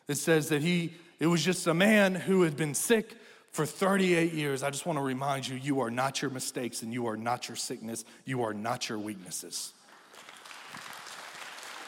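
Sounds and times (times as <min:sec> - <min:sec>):
speech: 0:00.1 - 0:09.8
audience clapping: 0:09.8 - 0:11.8.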